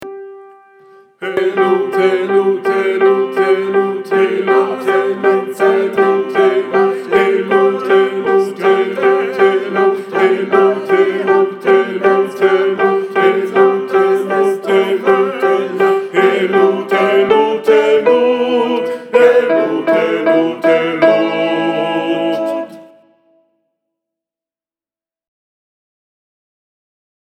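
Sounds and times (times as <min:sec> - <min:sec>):
tenor singing: 0:00.0 - 0:23.2.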